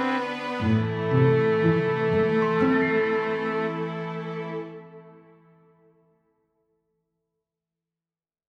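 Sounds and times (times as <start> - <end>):
instrumental music: 0.0 - 5.8.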